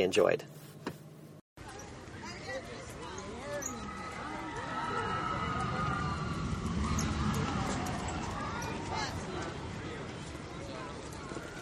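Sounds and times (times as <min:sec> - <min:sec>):
people talking: 0:01.6 - 0:11.6
riders' high wavering cries: 0:03.5 - 0:10.1
Expedition Everest roller coaster at Disney's Animal Kingdom roaring: 0:03.8 - 0:11.6.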